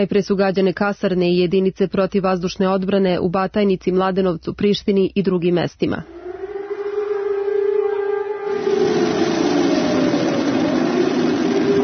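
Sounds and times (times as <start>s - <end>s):
speech: 0.0s - 6.2s
air raid warning siren: 6.0s - 11.8s
rumbling roar: 6.0s - 11.8s.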